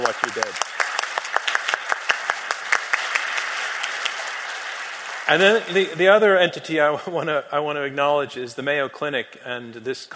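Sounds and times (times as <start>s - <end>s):
audience applause: 0.0s - 6.4s
speech: 0.2s - 0.7s, 5.3s - 10.1s.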